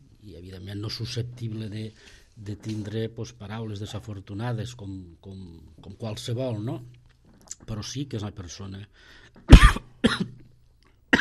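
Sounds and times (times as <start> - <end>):
speech: 0.2 - 7.0, 7.6 - 10.4
person coughing after choking on water: 9.5 - 10.4.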